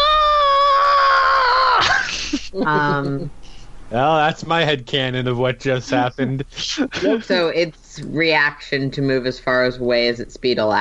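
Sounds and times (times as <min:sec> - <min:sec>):
player performing a bard character's scream of terror in a tabletop game: 0:00.0 - 0:01.8
laughter: 0:01.8 - 0:03.2, 0:04.0 - 0:07.7
speech: 0:02.6 - 0:10.7.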